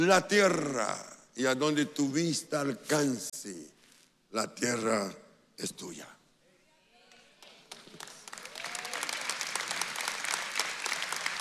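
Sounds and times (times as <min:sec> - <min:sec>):
speech: 0:00.0 - 0:06.2
audience applause: 0:07.4 - 0:11.3.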